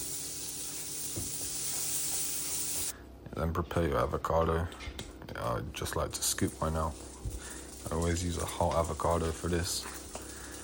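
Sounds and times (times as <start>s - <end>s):
buttered bread toasting in a pan: 0.0s - 2.9s, 6.3s - 10.6s
speech: 3.4s - 7.1s, 7.8s - 10.0s.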